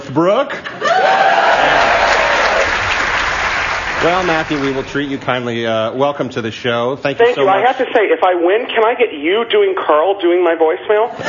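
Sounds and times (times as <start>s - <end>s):
speech: 0.1s - 1.2s, 4.0s - 11.2s
light applause from a game-show studio audience: 0.9s - 5.5s.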